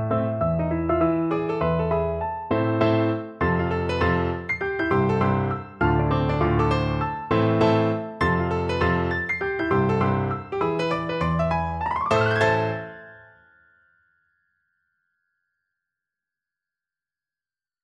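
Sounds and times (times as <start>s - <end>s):
piano duet: 0.0s - 13.6s.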